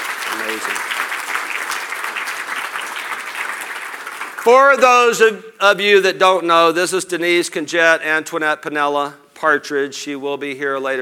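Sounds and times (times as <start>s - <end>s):
audience applause: 0.0s - 4.9s
speech: 0.4s - 1.0s, 4.4s - 11.0s.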